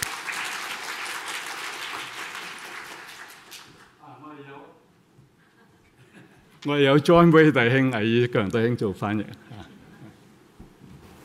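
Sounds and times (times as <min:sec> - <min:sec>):
applause: 0:00.0 - 0:04.0
speech: 0:06.6 - 0:09.4.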